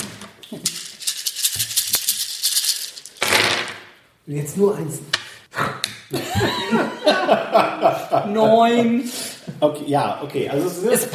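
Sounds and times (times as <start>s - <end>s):
bucketful of dice rattling: 0.0s - 3.9s
speech: 4.3s - 5.2s, 6.1s - 11.1s
laughter: 6.1s - 8.8s.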